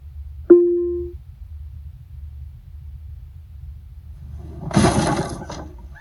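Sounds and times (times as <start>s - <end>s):
short tonal blip in the video game The Bard's Tale: 0.5s - 1.2s
wooden crate smashed open in the video game The Bard's Tale: 4.6s - 5.8s.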